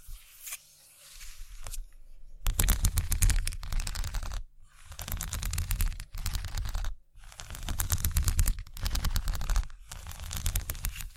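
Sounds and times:
scratching: 0:02.5 - 0:11.1.

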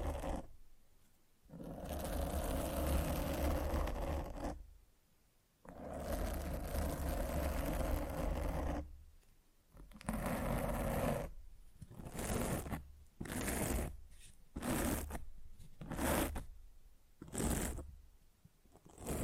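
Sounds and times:
scratching and rubbing against a microphone: 0:00.0 - 0:00.5, 0:01.5 - 0:04.6, 0:05.7 - 0:08.9, 0:09.9 - 0:16.5, 0:17.2 - 0:17.9, 0:18.8 - 0:19.2.

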